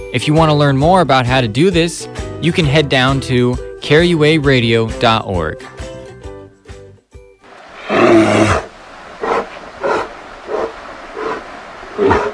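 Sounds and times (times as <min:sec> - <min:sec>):
speech: 0:00.1 - 0:05.7
grizzly bears roaring in Alaska: 0:07.7 - 0:12.3.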